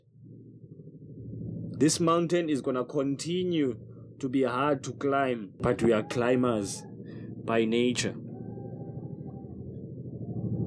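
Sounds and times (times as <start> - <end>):
speech: 1.8 - 8.2
helicopters flying overhead: 3.3 - 8.4.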